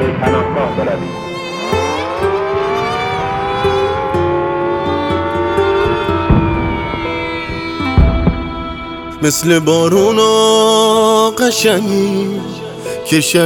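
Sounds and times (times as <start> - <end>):
air raid warning siren: 1.1 - 10.6
speech: 9.2 - 13.4.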